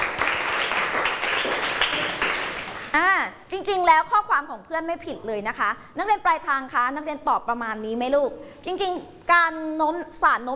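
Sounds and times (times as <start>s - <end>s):
classroom group clapping: 0.0s - 3.0s
speech: 3.0s - 10.5s.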